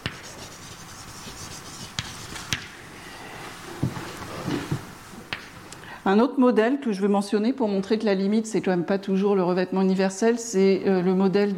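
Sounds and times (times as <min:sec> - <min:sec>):
scratching and tapping of writing on a board: 0:00.0 - 0:02.6
speech: 0:06.0 - 0:11.5.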